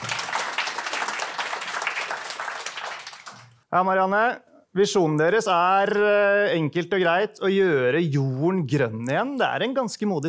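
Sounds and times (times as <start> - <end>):
audience applause: 0.0 - 3.6
speech: 3.7 - 10.2.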